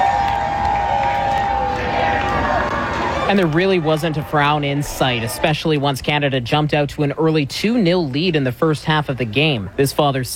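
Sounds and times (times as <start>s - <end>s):
fans cheering on the home side outside BC Place: 0.0s - 6.4s
speech: 3.3s - 10.3s.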